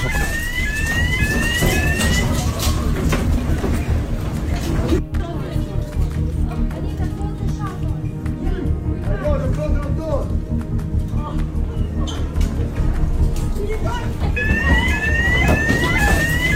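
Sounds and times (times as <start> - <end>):
shop security alarm whooping: 0.0 - 2.7, 14.4 - 16.5
busy noisy crowd voices: 0.0 - 16.5.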